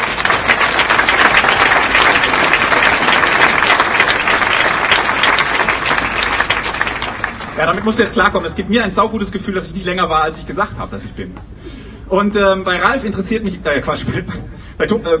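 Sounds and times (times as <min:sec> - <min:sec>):
audience applause: 0:00.0 - 0:08.5
speech: 0:07.7 - 0:15.1.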